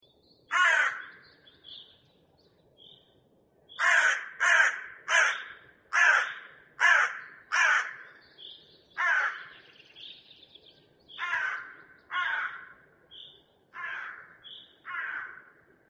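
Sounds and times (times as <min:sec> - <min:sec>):
crow: 0:00.5 - 0:01.4, 0:03.7 - 0:08.2, 0:09.0 - 0:09.7, 0:11.1 - 0:12.8, 0:13.7 - 0:15.7.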